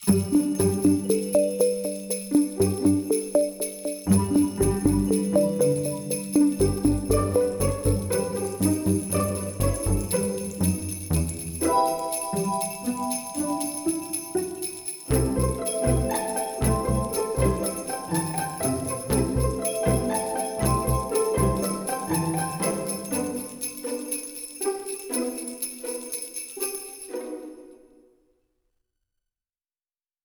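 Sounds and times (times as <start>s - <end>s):
social hub low ambient tone: 0.1s - 14.5s, 15.1s - 23.2s.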